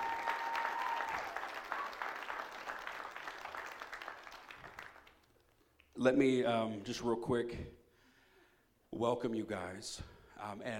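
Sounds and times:
church congregation applause: 0.0s - 5.3s
speech: 6.0s - 7.8s, 9.0s - 10.7s.

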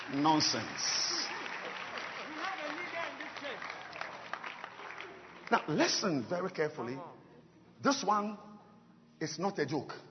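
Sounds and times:
crowd clapping: 0.0s - 6.6s
speech: 0.1s - 1.2s, 5.5s - 7.2s, 7.8s - 8.5s, 9.2s - 10.0s.

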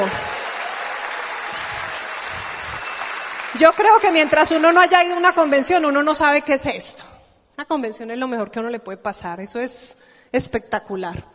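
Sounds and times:
speech: 0.0s - 0.3s, 3.6s - 11.3s
audience applause: 0.0s - 6.1s.

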